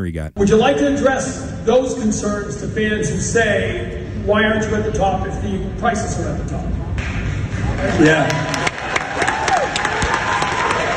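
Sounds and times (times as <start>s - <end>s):
speech: 0.0s - 6.9s, 7.8s - 8.6s
crowd applause: 7.7s - 10.9s.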